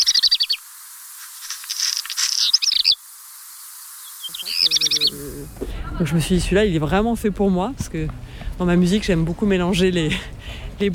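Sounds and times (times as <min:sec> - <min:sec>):
black redstart song: 0:00.0 - 0:00.6, 0:01.9 - 0:03.0, 0:04.0 - 0:05.4
speech: 0:04.3 - 0:10.9.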